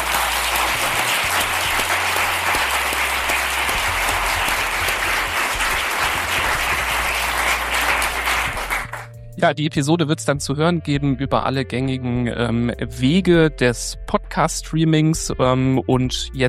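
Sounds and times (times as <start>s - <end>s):
audience applause: 0.0s - 9.1s
speech: 9.4s - 16.4s.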